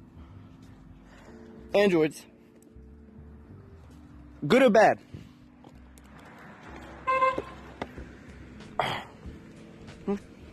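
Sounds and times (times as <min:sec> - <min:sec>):
speech: 0:01.7 - 0:02.3, 0:04.4 - 0:05.1, 0:10.1 - 0:10.3
car horn honk: 0:07.0 - 0:07.6.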